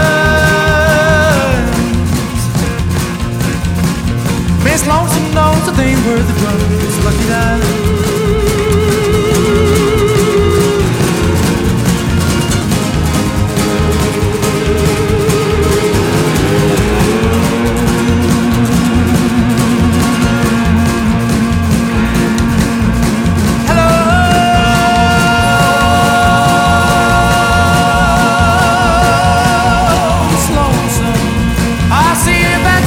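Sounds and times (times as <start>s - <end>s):
upbeat pop folk rock music: 0.0s - 32.8s.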